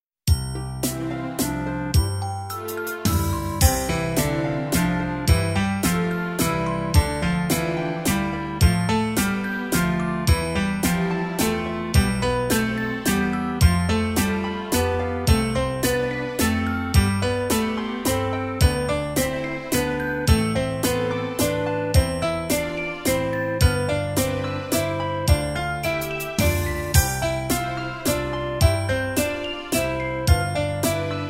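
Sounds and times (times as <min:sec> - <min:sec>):
waltz music: 0:00.3 - 0:31.2.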